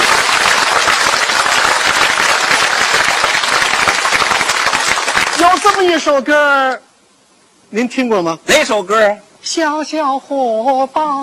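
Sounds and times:
audience applause at a stage show: 0.0 - 5.9
speech: 5.8 - 6.9, 7.7 - 11.2.

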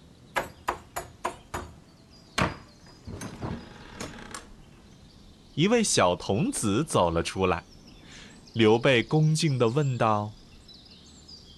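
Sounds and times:
knocking on a door: 0.4 - 1.8, 2.4 - 2.7
speech: 5.6 - 7.7, 8.6 - 10.4.

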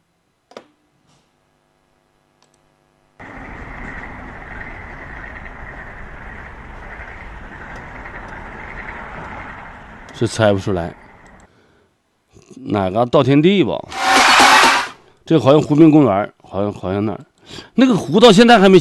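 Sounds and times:
frogs croaking: 3.2 - 11.4
speech: 10.2 - 11.0, 12.7 - 14.0, 15.3 - 18.7.

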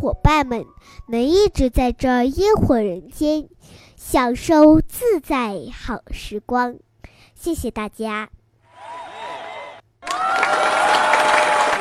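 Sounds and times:
speech: 0.0 - 9.1
audience applause: 8.7 - 11.8
cheers and whoops: 8.7 - 11.8
excited crowd voices: 8.7 - 11.8.

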